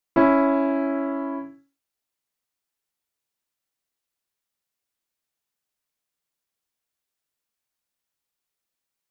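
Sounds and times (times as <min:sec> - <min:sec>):
minor and major third harmonic intervals: 0:00.2 - 0:01.6.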